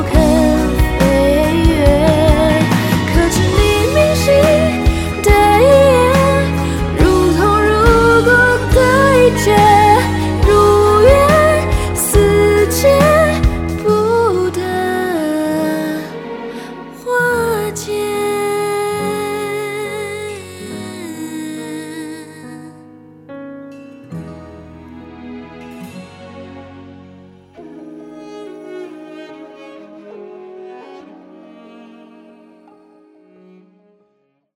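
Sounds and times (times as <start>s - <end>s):
person singing a cover song: 0.0s - 22.8s.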